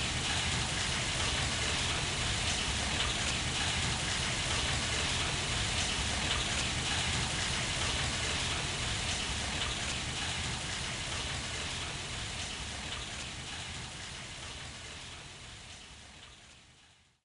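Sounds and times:
sewer water flowing: 0:00.0 - 0:16.2.

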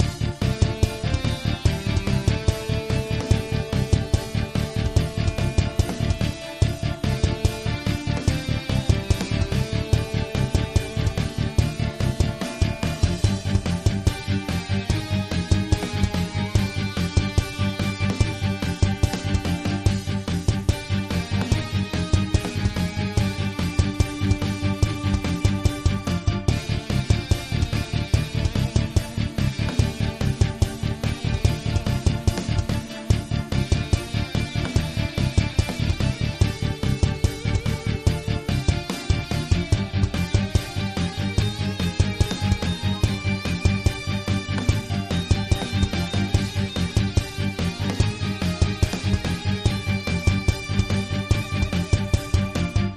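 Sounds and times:
heavy metal dragon music: 0:00.0 - 0:52.9.

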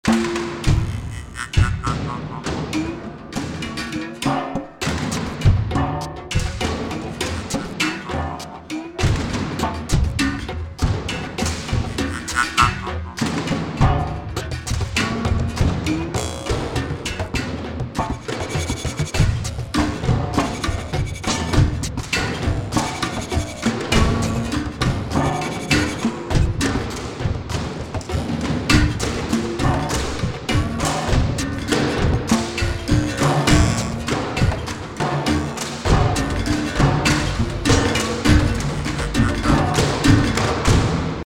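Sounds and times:
rural battle percussion loop: 0:00.0 - 0:41.2.

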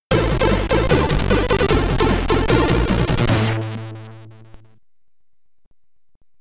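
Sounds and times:
Commodore 64 SID stereo chiptune music: 0:00.1 - 0:04.7.

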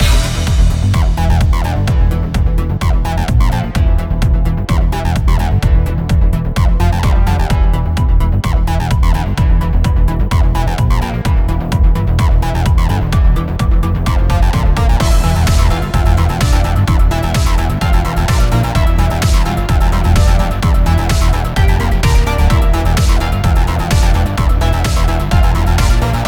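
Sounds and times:
arcade music: 0:00.0 - 0:26.2.

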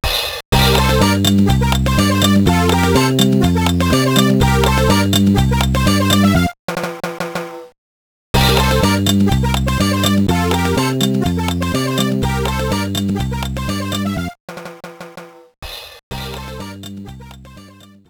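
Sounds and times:
bowling game menu music: 0:00.6 - 0:06.4, 0:08.4 - 0:14.1.

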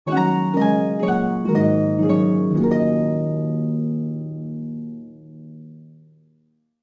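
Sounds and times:
Greek music: 0:00.1 - 0:04.4.

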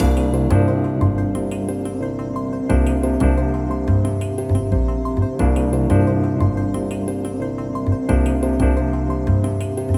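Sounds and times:
music draw loop: 0:00.0 - 0:09.9.

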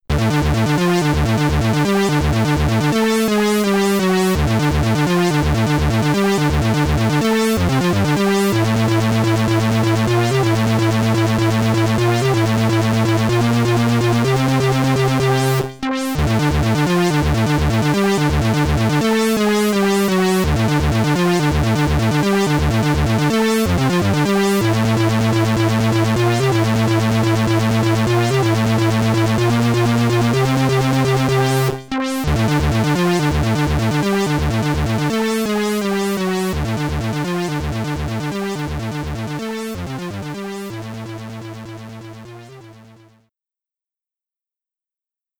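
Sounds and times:
SID chip stereo chiptune game music: 0:00.1 - 0:43.1.

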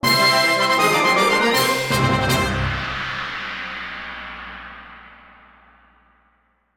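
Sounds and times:
boss clear fanfare: 0:00.0 - 0:03.1.

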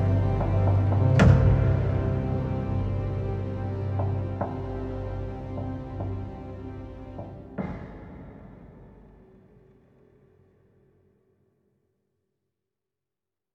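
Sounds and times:
suspense music: 0:00.0 - 0:09.9.

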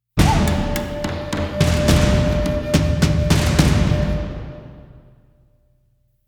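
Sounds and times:
combat music ending: 0:00.2 - 0:05.2.

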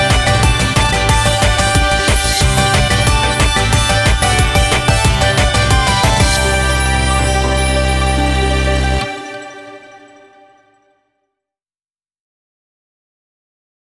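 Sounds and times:
bell ringing: 0:00.0 - 0:10.6.

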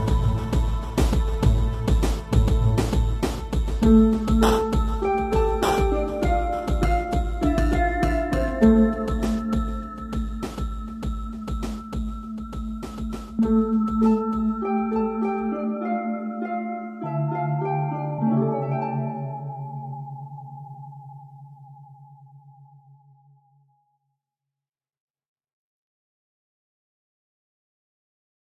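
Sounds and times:
funk music with harp: 0:00.0 - 0:19.9.

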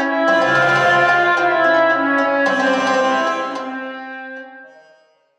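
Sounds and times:
Egyptian music sting: 0:00.2 - 0:03.8.

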